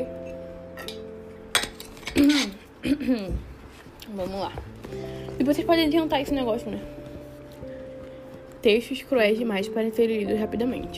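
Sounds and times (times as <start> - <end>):
glass clinking while drinking water: 0.2 - 2.6
speech: 2.1 - 3.5, 4.1 - 7.0, 8.6 - 10.9.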